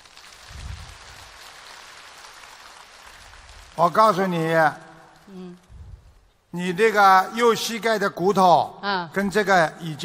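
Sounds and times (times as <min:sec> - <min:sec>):
applause: 0:00.0 - 0:05.3
speech: 0:03.8 - 0:05.6, 0:06.5 - 0:10.0.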